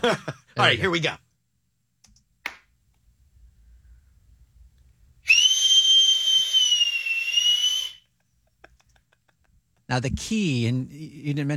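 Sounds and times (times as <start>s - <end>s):
speech: 0.0s - 1.2s, 9.9s - 11.5s
hand clap: 2.5s - 2.7s
loud high-pitched whistle: 5.3s - 8.0s.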